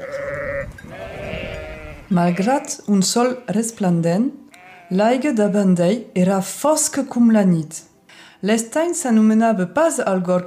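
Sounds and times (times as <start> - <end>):
sheep bleating: 0.0 - 3.6, 4.5 - 5.1
speech: 2.1 - 10.4.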